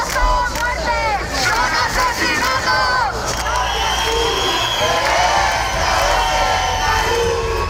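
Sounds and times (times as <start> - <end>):
large protest crowd chanting slogans: 0.0 - 7.6
scattered cheers: 2.4 - 7.6.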